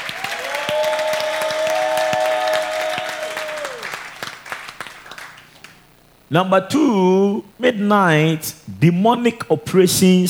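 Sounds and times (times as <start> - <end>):
audience clapping: 0.0 - 5.9
speech: 6.3 - 10.2.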